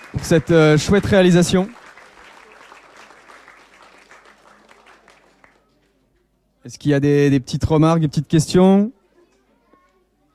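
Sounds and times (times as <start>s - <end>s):
audience applause: 0.0s - 5.6s
speech: 0.1s - 1.8s, 6.7s - 9.0s.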